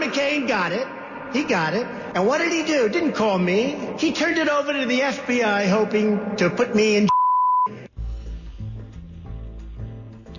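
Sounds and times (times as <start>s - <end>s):
speech: 0.2s - 7.1s
high-pitched censor bleep: 7.1s - 7.8s.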